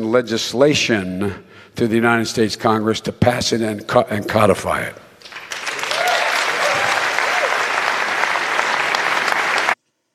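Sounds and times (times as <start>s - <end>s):
speech: 0.0s - 5.1s
town hall audience applause: 5.2s - 9.8s.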